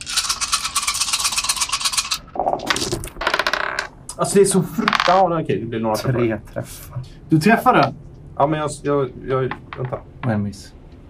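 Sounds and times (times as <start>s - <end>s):
dice rolling on a hard table: 0.2s - 3.9s, 4.8s - 5.2s
speech: 4.2s - 10.8s.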